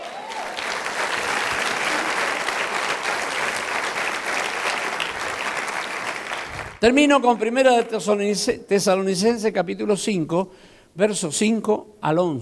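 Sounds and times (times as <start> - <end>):
audience clapping: 0.0 - 8.5
speech: 6.8 - 12.4.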